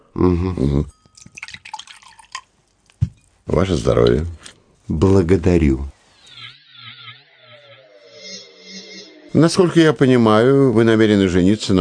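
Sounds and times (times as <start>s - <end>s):
speech: 0.2s - 1.4s, 3.5s - 6.0s, 9.4s - 11.7s
drink pouring: 1.1s - 3.3s.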